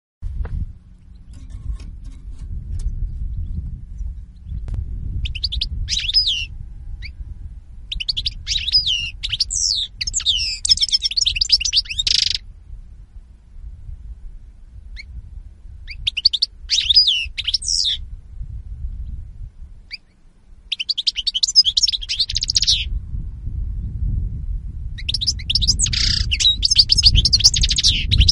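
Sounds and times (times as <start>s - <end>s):
low background rumble: 0.2s - 28.2s
European goldfinch song: 0.8s - 7.2s, 7.8s - 12.5s, 15.8s - 18.0s, 19.8s - 23.0s, 25.0s - 28.2s.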